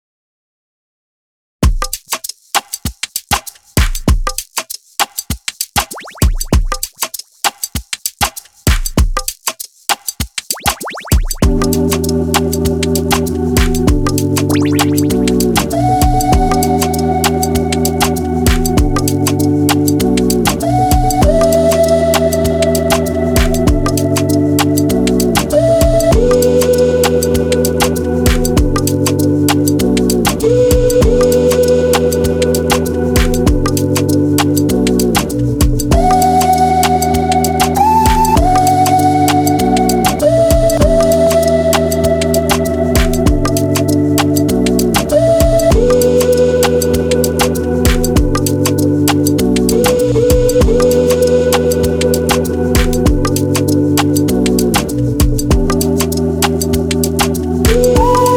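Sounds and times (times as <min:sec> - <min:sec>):
ethnic music: 0:01.6 - 0:58.3.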